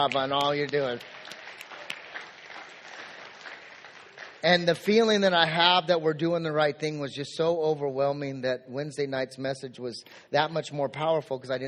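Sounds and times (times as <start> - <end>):
speech: 0.0 - 1.4, 4.4 - 11.6
clapping: 0.0 - 4.8.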